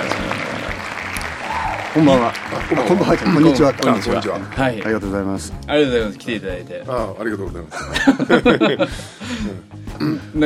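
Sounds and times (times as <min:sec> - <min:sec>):
small group clapping hands: 0:00.0 - 0:05.7
speech: 0:02.0 - 0:10.4
laughter: 0:07.7 - 0:09.7.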